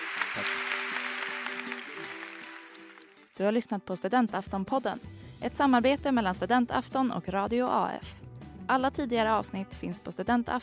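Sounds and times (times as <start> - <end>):
audience applause: 0.0 - 3.4
speech: 3.4 - 10.6.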